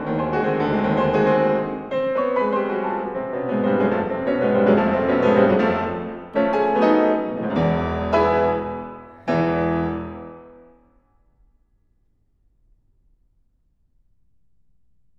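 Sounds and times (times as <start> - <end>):
piano etude: 0.0 - 11.0.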